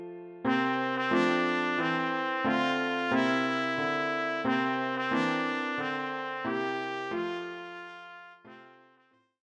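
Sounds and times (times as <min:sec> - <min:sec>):
trumpet: 0:00.5 - 0:09.3.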